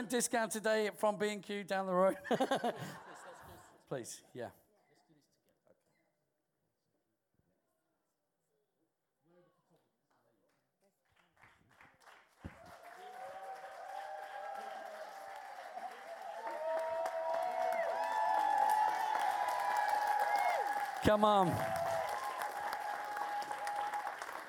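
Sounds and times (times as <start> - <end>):
speech: 0.0 - 3.1, 3.9 - 4.6, 21.1 - 21.8
laughter: 2.1 - 3.8
applause: 10.1 - 24.4.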